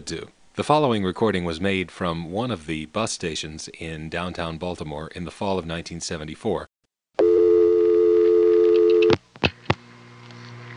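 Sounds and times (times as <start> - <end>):
speech: 0.0 - 6.7
telephone permanent signal tone from a crossbar exchange at a Baltimore bus station payphone: 7.2 - 9.2.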